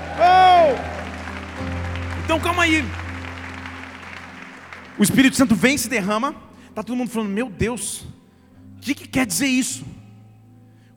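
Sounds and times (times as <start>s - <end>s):
audience applause: 0.0s - 6.1s
speech: 2.3s - 3.0s, 5.0s - 8.1s, 8.8s - 10.0s.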